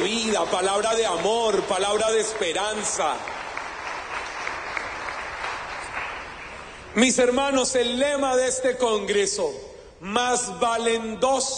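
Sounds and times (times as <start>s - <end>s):
audience applause: 0.0s - 6.8s
speech: 0.4s - 3.4s, 7.0s - 11.5s.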